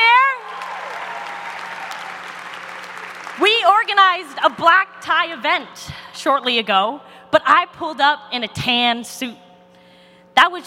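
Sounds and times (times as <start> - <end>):
crowd applauding a class committee at a senior-class event: 0.4 - 4.4
speech: 4.4 - 9.4, 10.4 - 10.6.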